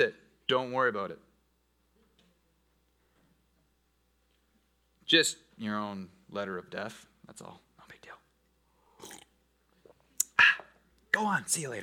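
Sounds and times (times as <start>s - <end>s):
speech: 0.0s - 1.3s, 5.1s - 7.6s, 11.2s - 11.8s
slurp: 8.8s - 10.8s.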